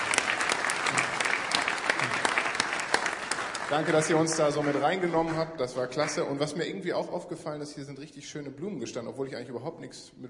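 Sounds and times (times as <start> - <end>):
audience applause: 0.0 - 6.4
speech: 3.7 - 10.2.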